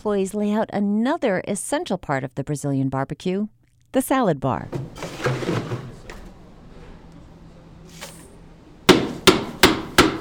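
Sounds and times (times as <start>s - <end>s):
speech: 0.0s - 5.6s
mallet hammering ice: 8.9s - 10.2s.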